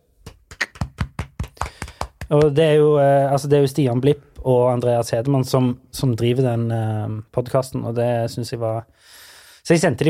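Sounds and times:
single pair of hands clapping: 0.2s - 2.7s
speech: 2.3s - 10.0s.

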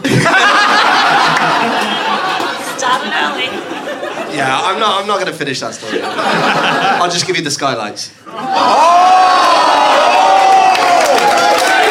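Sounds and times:
crowd cheering: 0.0s - 5.0s, 8.3s - 11.9s
laughter: 0.0s - 7.4s, 8.2s - 9.3s
speech: 4.4s - 9.3s.

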